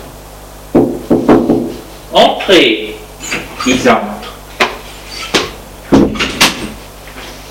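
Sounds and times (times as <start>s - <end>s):
knocking on a door: 0.7s - 1.8s, 5.4s - 6.6s
speech: 2.5s - 2.9s, 3.6s - 4.2s.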